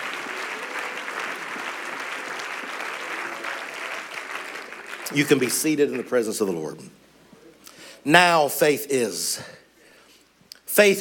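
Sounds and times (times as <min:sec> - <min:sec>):
crowd clapping: 0:00.0 - 0:06.5
speech: 0:05.1 - 0:07.1, 0:08.0 - 0:09.6, 0:10.8 - 0:10.9.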